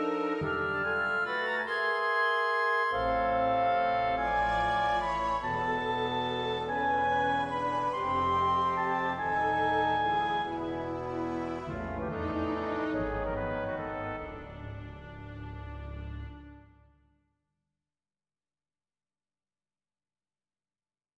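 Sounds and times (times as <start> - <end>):
scherzo in A major: 0.0 - 16.8.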